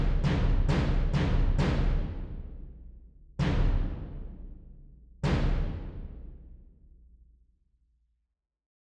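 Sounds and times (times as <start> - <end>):
bass drum: 0.0 - 2.4, 3.4 - 4.6.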